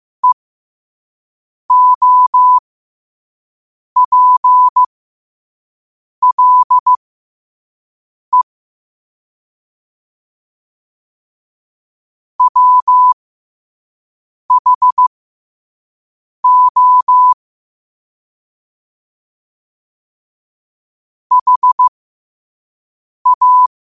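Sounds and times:
morse code at 5 wpm: 0:01.7 - 0:02.6, 0:04.0 - 0:04.9, 0:06.2 - 0:07.0, 0:12.4 - 0:13.2, 0:14.5 - 0:15.1, 0:16.4 - 0:17.4, 0:21.3 - 0:21.9, 0:23.2 - 0:23.7.

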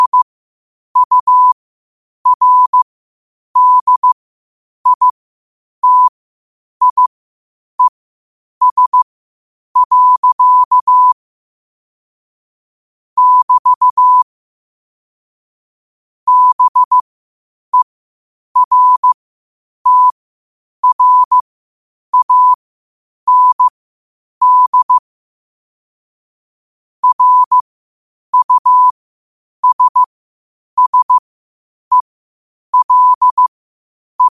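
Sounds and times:
morse code at 5 wpm: 0:00.0 - 0:00.3, 0:01.0 - 0:01.6, 0:02.2 - 0:02.8, 0:03.6 - 0:04.2, 0:04.8 - 0:05.1, 0:05.8 - 0:06.1, 0:06.8 - 0:07.1, 0:08.6 - 0:09.1, 0:09.8 - 0:11.2, 0:13.2 - 0:14.2, 0:16.3 - 0:17.0, 0:18.6 - 0:19.2, 0:19.8 - 0:20.2, 0:20.8 - 0:21.4, 0:22.1 - 0:22.6, 0:23.3 - 0:23.7, 0:24.4 - 0:25.0, 0:27.0 - 0:27.6, 0:28.3 - 0:28.9, 0:29.6 - 0:30.1, 0:30.8 - 0:31.2, 0:32.7 - 0:33.5.

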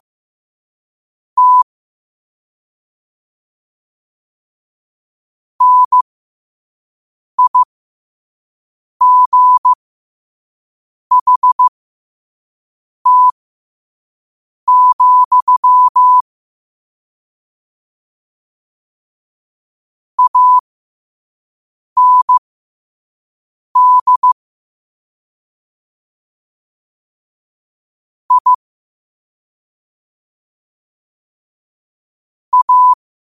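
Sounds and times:
morse code at 5 wpm: 0:01.4 - 0:01.6, 0:05.6 - 0:06.0, 0:07.4 - 0:07.7, 0:09.0 - 0:09.8, 0:11.1 - 0:11.7, 0:13.1 - 0:13.4, 0:14.7 - 0:16.2, 0:20.2 - 0:20.6, 0:22.0 - 0:22.4, 0:23.8 - 0:24.4, 0:28.3 - 0:28.6, 0:32.5 - 0:33.0.

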